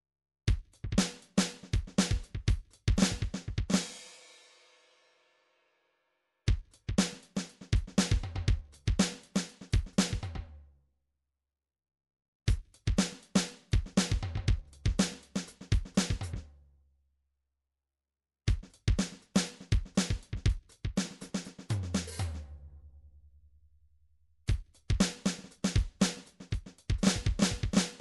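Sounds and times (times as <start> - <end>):
MIDI drum pattern: 0.6 - 3.9, 6.5 - 10.4, 12.5 - 16.4, 18.5 - 22.6, 24.5 - 27.9.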